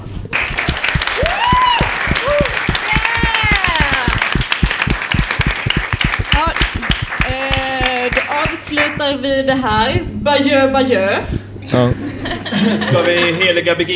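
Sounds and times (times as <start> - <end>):
live audience applauding: 0.3 - 9.0
speech: 8.7 - 13.9
laughter: 11.6 - 13.8.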